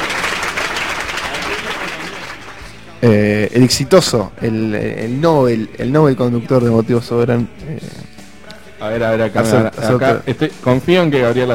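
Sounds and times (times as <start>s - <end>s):
studio game show crowd applause: 0.0s - 2.6s
speech: 3.0s - 8.0s, 8.8s - 11.5s.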